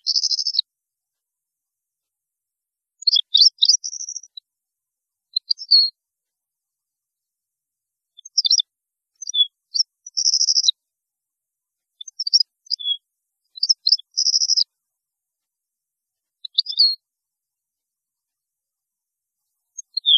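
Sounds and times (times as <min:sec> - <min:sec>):
European goldfinch singing: 0:00.0 - 0:00.6, 0:03.0 - 0:04.4, 0:05.3 - 0:06.0, 0:08.2 - 0:08.6, 0:09.2 - 0:10.8, 0:12.0 - 0:14.7, 0:16.4 - 0:17.0, 0:19.8 - 0:20.1.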